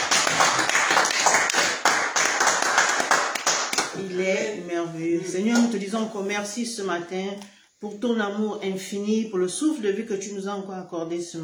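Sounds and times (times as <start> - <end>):
congregation clapping during a morning church service: 0.0 - 4.0
speech: 4.9 - 11.4.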